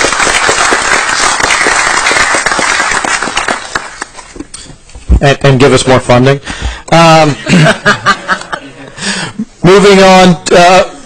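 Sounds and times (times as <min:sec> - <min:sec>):
crowd applause: 0:00.0 - 0:04.1
speech: 0:05.2 - 0:08.2, 0:09.6 - 0:10.9
laughter: 0:07.2 - 0:09.5.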